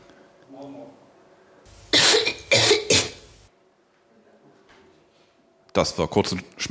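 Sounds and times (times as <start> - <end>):
person coughing: 1.9 - 3.3
speech: 5.8 - 6.6.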